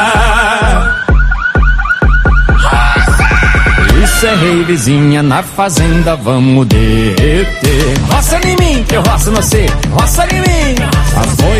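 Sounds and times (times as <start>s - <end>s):
heavy bass thumps: 0.0s - 5.2s, 5.8s - 11.5s
pickup truck alarms going off: 0.4s - 4.9s
speech: 4.4s - 11.5s.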